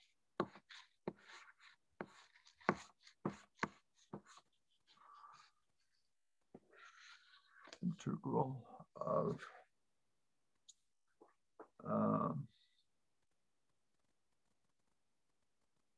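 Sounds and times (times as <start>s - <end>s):
pen scratching while writing a math equation: 0.0s - 6.0s, 6.8s - 7.8s
speech: 8.2s - 9.6s.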